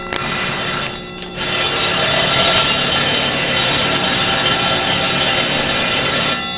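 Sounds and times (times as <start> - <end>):
drill: 0.1 - 6.4.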